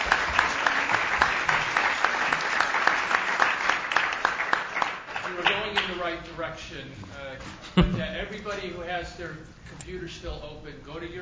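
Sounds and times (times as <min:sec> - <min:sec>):
audience applauding the panel: 0:00.0 - 0:06.1
speech: 0:06.6 - 0:11.2.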